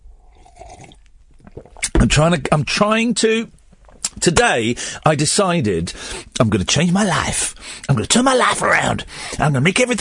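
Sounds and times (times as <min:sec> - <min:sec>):
slurping caffeine-free coffee: 0:00.2 - 0:01.9
speech: 0:02.0 - 0:03.6, 0:04.2 - 0:10.0.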